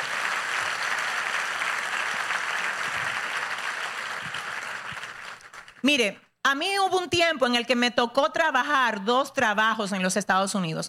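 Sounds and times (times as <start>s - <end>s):
audience applause: 0.0s - 5.8s
speech: 5.8s - 10.8s.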